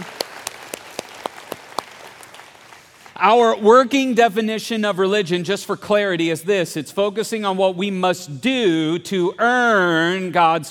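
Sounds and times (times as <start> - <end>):
audience clapping to welcome online and TV viewers: 0.0 - 3.2
speech: 3.2 - 10.7.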